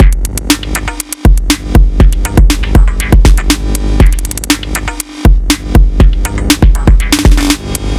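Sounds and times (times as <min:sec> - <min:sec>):
808 drum machine beat loop: 0:00.0 - 0:07.8.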